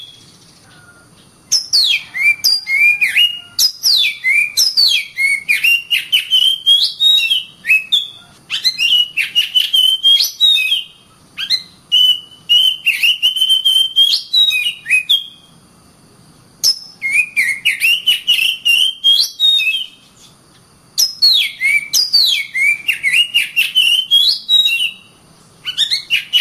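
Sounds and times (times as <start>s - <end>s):
Oriental magpie-robin song: 0.0s - 15.4s, 16.6s - 20.4s, 21.0s - 26.3s.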